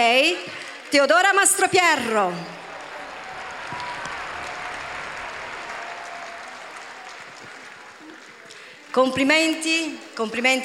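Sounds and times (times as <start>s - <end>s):
speech: 0.0s - 2.6s, 8.9s - 10.6s
audience applause: 1.8s - 9.0s.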